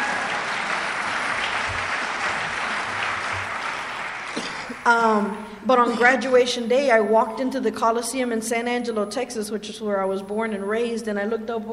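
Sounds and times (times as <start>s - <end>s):
audience clapping: 0.0s - 4.9s
speech: 4.8s - 11.7s.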